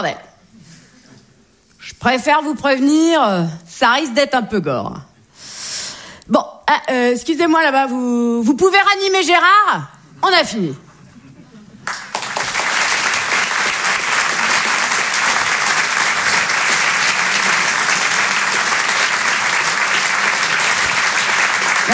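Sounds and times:
speech: 0.0 - 0.3, 1.9 - 5.1, 6.3 - 10.8
audience applause: 11.8 - 21.9.

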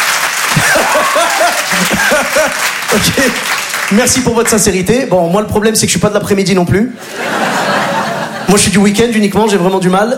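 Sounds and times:
audience applause in a comedy show hall: 0.0 - 4.6
laughter: 0.4 - 3.5, 7.0 - 8.8
speech: 2.9 - 7.3, 8.5 - 10.1.

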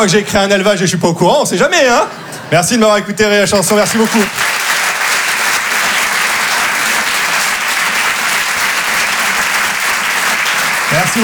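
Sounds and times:
speech: 0.0 - 4.6
audience applause after a song: 3.6 - 11.2.

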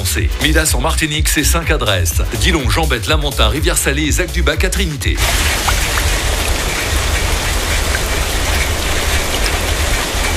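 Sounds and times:
speech: 0.1 - 5.9
heavy rain falling: 5.2 - 10.3.

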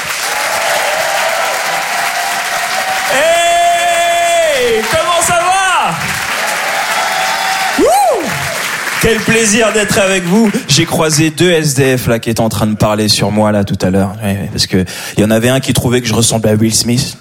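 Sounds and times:
French comedy club audience applauding a comedian: 0.0 - 11.2
audience whoops and long sustained shout: 0.3 - 8.6
speech: 3.1 - 3.4, 9.0 - 17.1.

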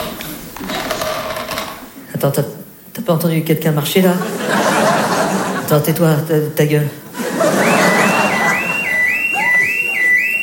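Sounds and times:
speech: 2.2 - 4.7, 5.7 - 7.7
laughter: 4.1 - 6.0, 7.0 - 10.4
alarm going off: 7.4 - 10.4.

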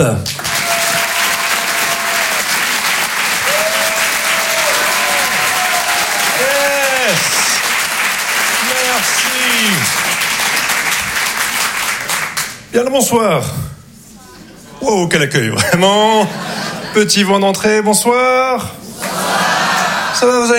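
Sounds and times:
speech: 0.0 - 0.4, 9.2 - 10.0, 12.7 - 13.7, 14.8 - 16.4, 17.0 - 18.9, 20.2 - 20.5
audience applause: 0.3 - 12.6, 19.0 - 20.2
audience cheering: 0.4 - 11.4, 19.0 - 20.5
laughter: 15.6 - 17.4, 18.8 - 20.4.

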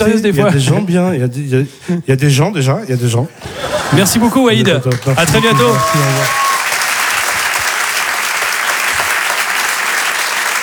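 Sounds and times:
speech: 0.0 - 6.5
laughter: 3.4 - 6.4
loud audience applause greeting an introduced guest on stage: 4.6 - 10.6.

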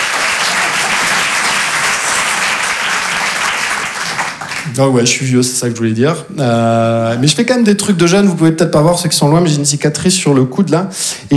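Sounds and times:
audience applause: 0.0 - 5.1
speech: 4.8 - 11.3.

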